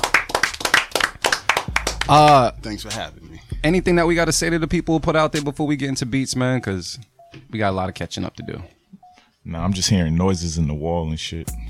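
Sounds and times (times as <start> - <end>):
hand clapping: 0.0 - 3.1
speech: 2.1 - 8.8, 9.4 - 11.6.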